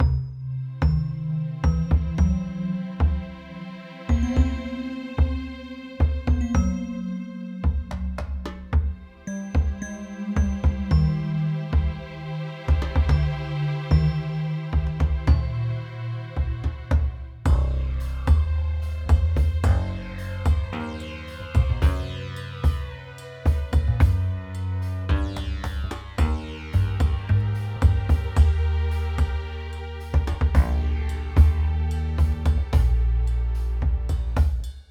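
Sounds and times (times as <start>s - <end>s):
desert music: 0.0s - 34.8s.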